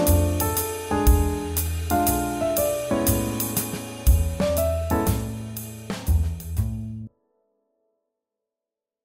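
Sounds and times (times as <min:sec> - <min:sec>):
swing jazz: 0:00.0 - 0:07.1.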